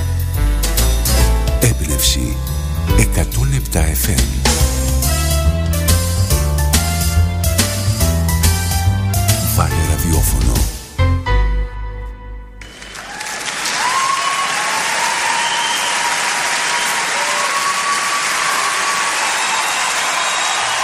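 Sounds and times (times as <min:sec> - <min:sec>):
brief musical ending: 0:00.4 - 0:13.1
speech: 0:01.6 - 0:04.6, 0:09.8 - 0:10.8
live concert crowd applauding: 0:12.6 - 0:20.8
crowd whistles and cheers: 0:12.7 - 0:20.8.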